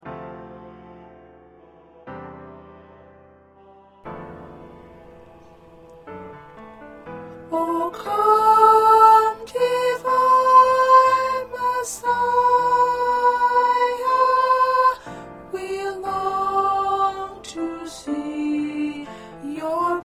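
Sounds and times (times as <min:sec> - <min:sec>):
soprano singing choir parts: 0:03.6 - 0:20.0.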